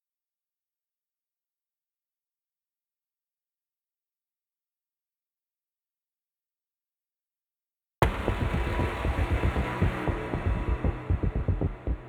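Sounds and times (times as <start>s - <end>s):
heavy bass: 8.0s - 12.0s.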